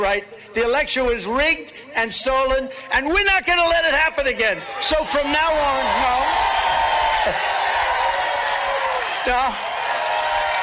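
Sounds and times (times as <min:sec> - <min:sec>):
speech: 0:00.1 - 0:07.5, 0:09.2 - 0:09.7
crowd screaming: 0:04.5 - 0:10.6.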